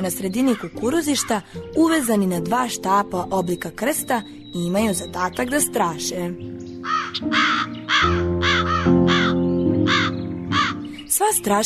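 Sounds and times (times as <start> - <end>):
speech: 0.0 - 8.2, 11.2 - 11.6
crows cawing around a cornfield: 0.4 - 1.6, 6.8 - 10.9.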